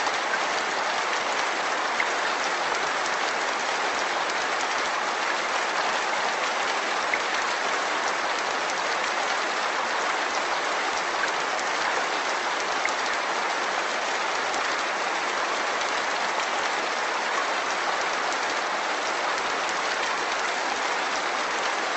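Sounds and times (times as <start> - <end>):
relaxing rain soundscape: 0.0 - 21.9.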